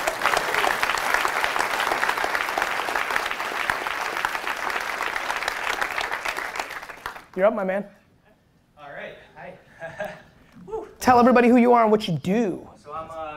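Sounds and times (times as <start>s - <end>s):
audience applause: 0.0s - 7.4s
speech: 7.4s - 8.0s, 9.1s - 13.2s.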